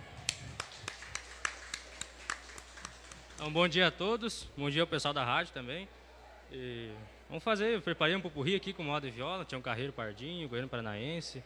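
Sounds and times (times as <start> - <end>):
people clapping: 0.0 - 4.2
speech: 3.4 - 11.4.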